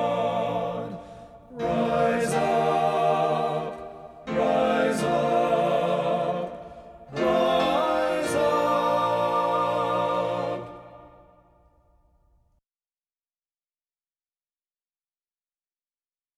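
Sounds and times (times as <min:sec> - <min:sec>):
men's choir singing: 0:00.0 - 0:11.4.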